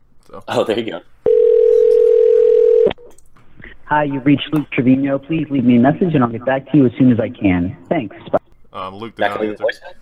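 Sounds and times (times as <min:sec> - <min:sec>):
speech: 0:00.3 - 0:01.1, 0:03.9 - 0:10.0
telephone tone: 0:01.3 - 0:03.0.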